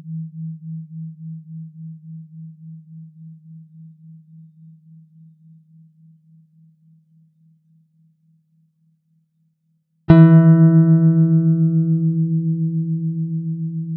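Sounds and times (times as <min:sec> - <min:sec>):
wolf tone plucks: 0:10.1 - 0:13.8.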